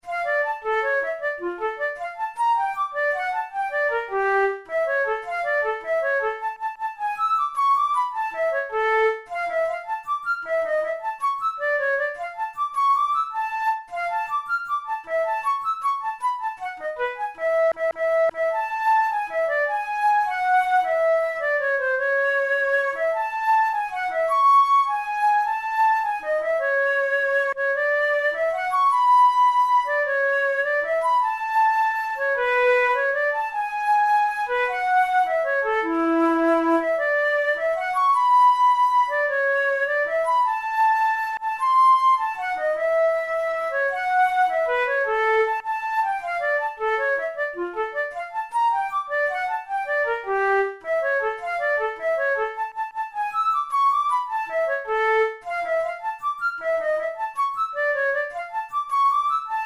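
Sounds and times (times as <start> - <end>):
musical study in D minor: 0.0 - 59.6.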